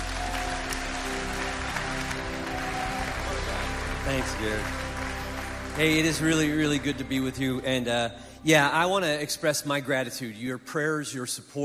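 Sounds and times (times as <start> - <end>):
audience applause welcoming a guest preacher at a church gathering: 0.0 - 7.9
speech: 4.1 - 4.8, 5.8 - 11.6.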